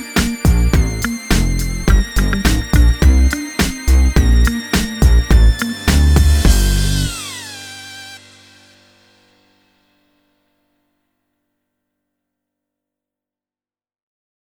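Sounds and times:
hip hop music: 0:00.0 - 0:08.7.

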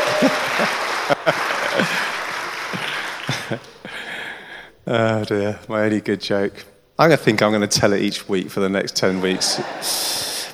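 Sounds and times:
vocal whoops and cheers: 0:00.0 - 0:03.2
crowd clapping: 0:00.0 - 0:10.5
laughter: 0:00.0 - 0:10.5
speech: 0:01.3 - 0:02.0, 0:04.9 - 0:10.3.

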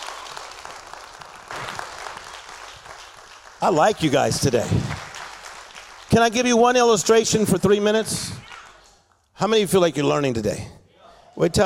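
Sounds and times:
audience clapping hands: 0:00.0 - 0:09.2
speech: 0:03.6 - 0:05.0, 0:06.1 - 0:08.4, 0:09.4 - 0:10.8, 0:11.4 - 0:11.6.

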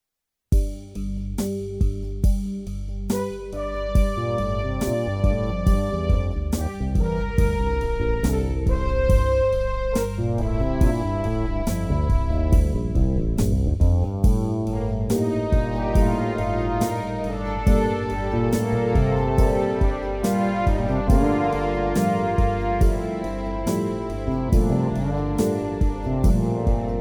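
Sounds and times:
instrumental music: 0:00.6 - 0:26.9.

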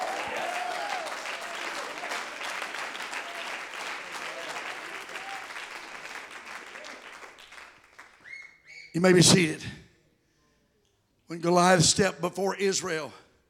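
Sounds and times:
crowd clapping hands: 0:00.0 - 0:08.5
speech: 0:09.0 - 0:09.8, 0:11.4 - 0:13.2.

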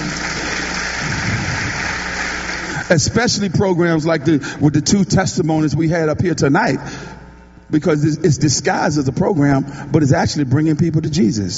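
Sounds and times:
audience clapping: 0:00.0 - 0:03.5
speech: 0:02.9 - 0:11.5.

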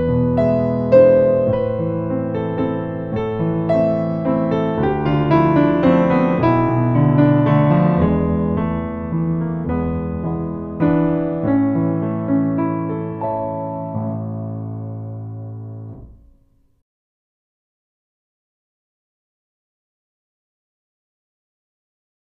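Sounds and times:
ballet adage music for fouettés: 0:00.0 - 0:16.4.

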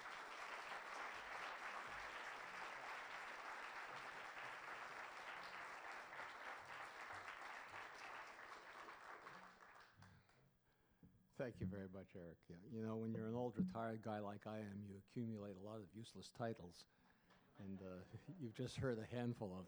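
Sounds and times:
Harrisburg audience applause welcoming a speaker: 0:00.0 - 0:10.0
speech: 0:11.4 - 0:17.0, 0:17.6 - 0:19.6.

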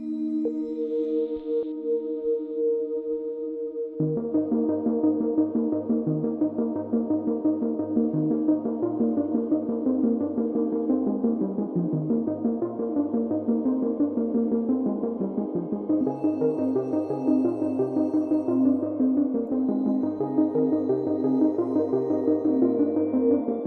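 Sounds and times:
investigative dreamy building synth pop music: 0:00.2 - 0:23.6.

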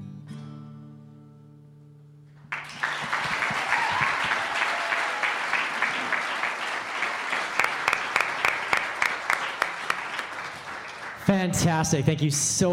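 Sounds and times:
audience applause after performance: 0:02.5 - 0:11.7
speech: 0:11.4 - 0:12.7.

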